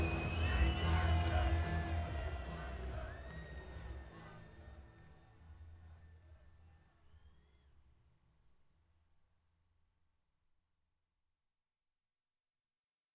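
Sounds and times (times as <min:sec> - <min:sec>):
audience noise: 0:00.0 - 0:05.2.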